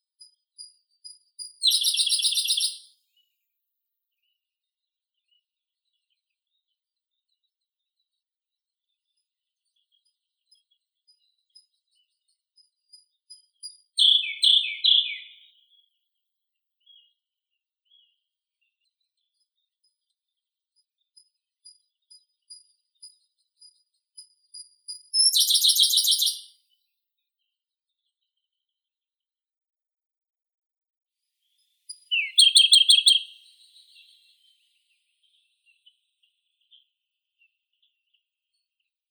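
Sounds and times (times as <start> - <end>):
Siberian blue robin Luscinia cyane singing: 0.6 - 2.9, 13.7 - 15.6, 22.5 - 26.5, 31.9 - 34.6.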